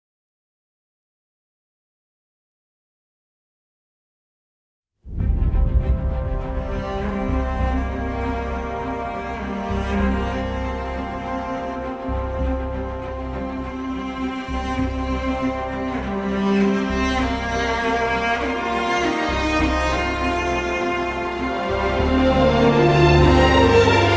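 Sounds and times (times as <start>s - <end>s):
instrumental music: 5.1s - 24.1s.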